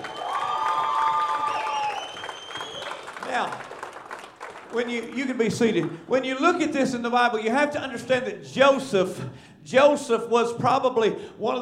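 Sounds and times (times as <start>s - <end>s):
audience clapping in praise: 0.0s - 6.1s
speech: 3.4s - 3.7s, 4.7s - 11.6s.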